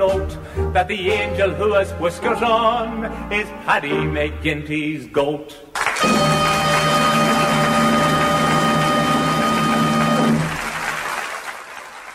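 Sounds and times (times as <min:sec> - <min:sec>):
speech: 0:00.0 - 0:06.3
audience applause: 0:05.8 - 0:12.1.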